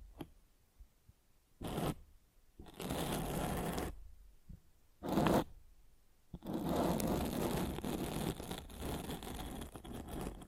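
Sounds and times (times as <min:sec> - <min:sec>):
microphone scratching: 0:01.6 - 0:02.0, 0:02.6 - 0:04.0, 0:05.0 - 0:05.5, 0:06.4 - 0:10.4.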